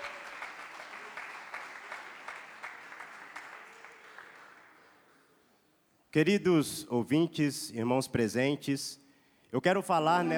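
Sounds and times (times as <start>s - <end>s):
audience applauding: 0.0s - 5.2s
speech: 6.1s - 10.3s.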